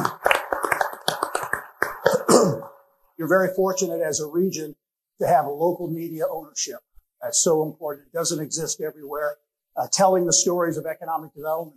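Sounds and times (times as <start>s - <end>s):
scattered hand claps from an audience at a regional economic development gathering: 0.0s - 2.3s
speech: 3.2s - 11.7s.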